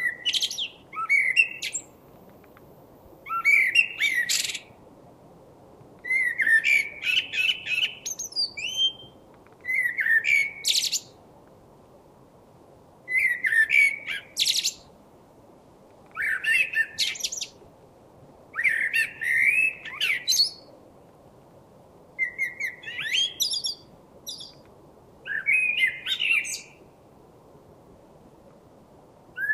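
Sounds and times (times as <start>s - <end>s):
common blackbird song: 0.0s - 2.0s, 3.2s - 4.8s, 6.0s - 11.2s, 13.1s - 14.9s, 16.1s - 17.6s, 18.6s - 20.7s, 22.2s - 26.8s, 29.4s - 29.5s
faint background hiss: 0.0s - 29.5s.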